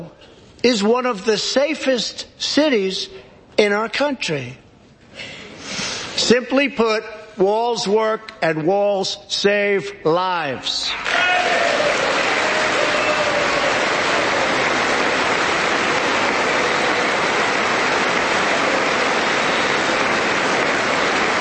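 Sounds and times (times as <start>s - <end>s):
speech: 0.0s - 4.6s, 5.2s - 11.6s
large audience applause: 10.9s - 21.3s.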